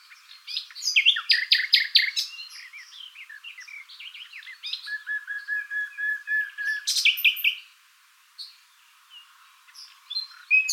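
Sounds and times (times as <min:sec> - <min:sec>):
common nightingale song: 0:00.0 - 0:10.7.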